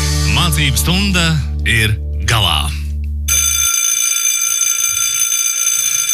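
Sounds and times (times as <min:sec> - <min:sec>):
speech: 0:00.6 - 0:02.8
electric school bell ringing: 0:03.3 - 0:06.1.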